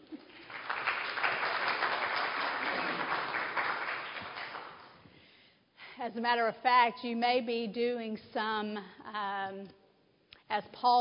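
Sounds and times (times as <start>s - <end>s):
audience clapping: 0.0s - 5.0s
speech: 6.0s - 9.8s, 10.5s - 11.0s.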